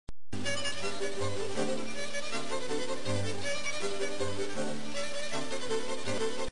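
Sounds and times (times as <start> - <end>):
fast classical music: 0.4 - 6.5.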